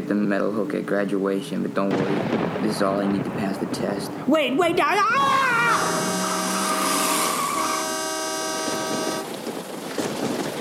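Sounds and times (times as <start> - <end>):
speech: 0.1 - 6.2
big diesel truck approaching: 5.3 - 9.2.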